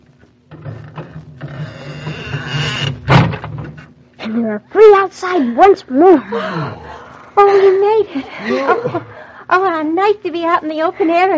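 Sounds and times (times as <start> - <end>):
squeaky door opening: 0.6 - 3.4
speech: 4.3 - 11.3
laughter: 7.4 - 9.3.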